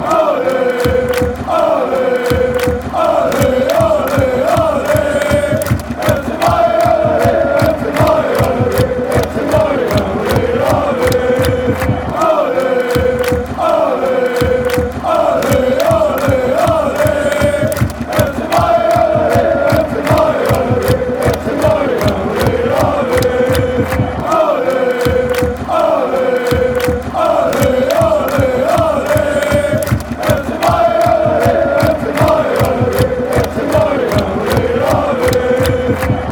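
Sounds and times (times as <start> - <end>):
fans chanting: 0.0 - 36.2.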